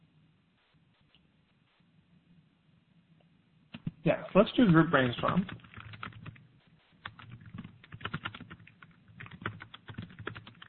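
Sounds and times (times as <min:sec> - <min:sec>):
speech: 0:04.0 - 0:05.7
fingers typing on a computer keyboard: 0:05.0 - 0:06.4, 0:07.0 - 0:10.6.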